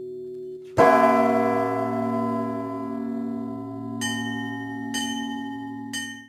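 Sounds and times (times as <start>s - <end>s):
bell ringing: 0.8s - 6.2s.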